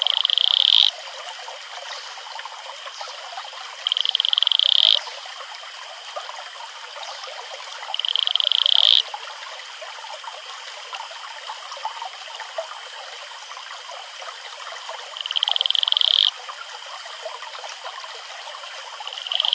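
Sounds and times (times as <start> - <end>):
male Atelopus franciscus advertisement call pulsed trill: 0.0 - 0.9, 3.9 - 5.0, 7.9 - 9.0, 15.2 - 16.3, 19.1 - 19.5.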